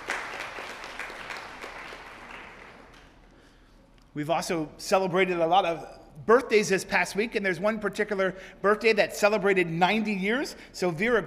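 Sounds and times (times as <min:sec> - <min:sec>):
audience applause: 0:00.0 - 0:03.2
speech: 0:04.2 - 0:11.2.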